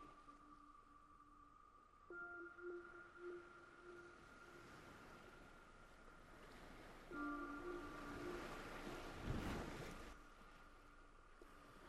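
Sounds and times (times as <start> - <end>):
ambient Omnisphere synth sirens: 0.0 - 10.1.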